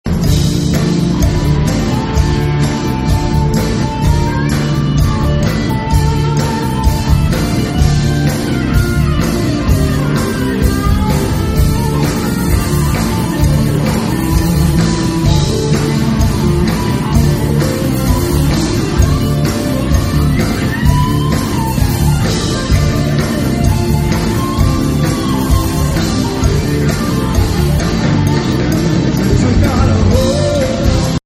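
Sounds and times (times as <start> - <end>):
rock and roll solo: 0.1 - 31.2.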